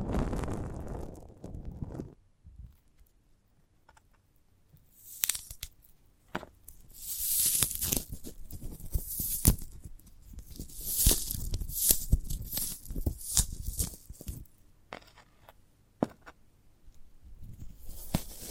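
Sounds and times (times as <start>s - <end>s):
crackling and snapping: 0.0s - 3.2s, 3.8s - 14.6s, 16.9s - 18.4s
sprouted coconut tearing and crunching: 5.0s - 5.8s, 6.7s - 14.5s.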